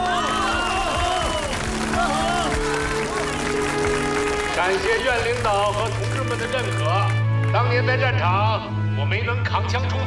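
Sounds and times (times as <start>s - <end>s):
audience applause: 0.0s - 7.6s
speech: 4.7s - 10.0s.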